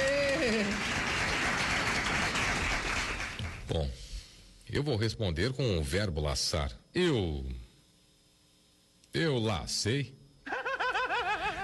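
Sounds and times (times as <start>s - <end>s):
crowd applause sound effect: 0.0s - 3.6s
speech: 3.7s - 4.0s, 4.7s - 7.6s, 9.2s - 10.2s
laughter: 10.4s - 11.6s.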